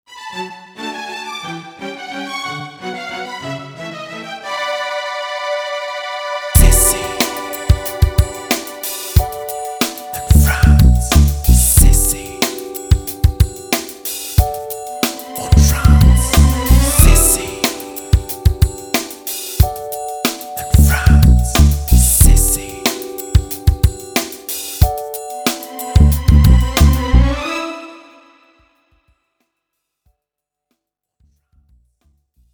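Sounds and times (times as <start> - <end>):
jingle: 6.6 - 28.6.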